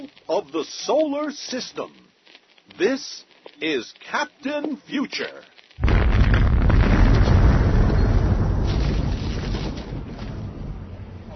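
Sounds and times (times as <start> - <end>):
speech: 0.3 - 2.0, 2.7 - 5.5
thermonuclear blast destroying the spaceship Fool's Gold: 5.8 - 11.3.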